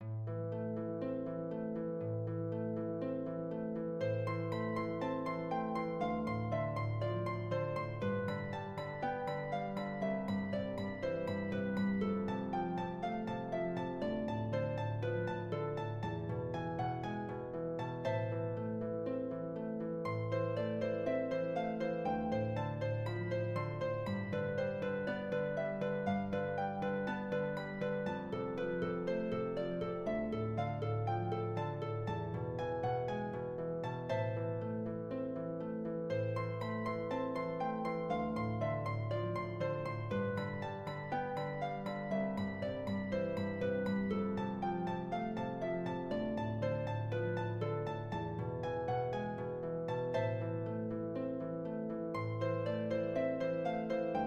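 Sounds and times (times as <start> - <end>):
simple harp passacaglia: 0.0 - 54.2.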